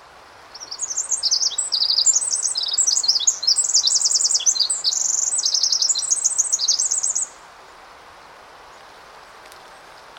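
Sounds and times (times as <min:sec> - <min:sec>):
faint background hiss: 0:00.0 - 0:10.1
Pacific wren song: 0:00.5 - 0:07.4.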